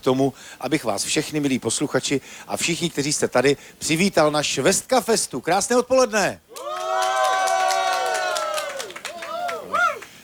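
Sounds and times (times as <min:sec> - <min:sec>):
speech: 0:00.0 - 0:06.8
festival crowd applauding: 0:06.5 - 0:10.2.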